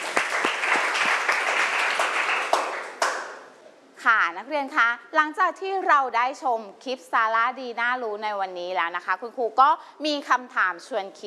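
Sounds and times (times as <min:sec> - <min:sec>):
applause for a class video: 0:00.0 - 0:03.5
speech: 0:04.0 - 0:11.2.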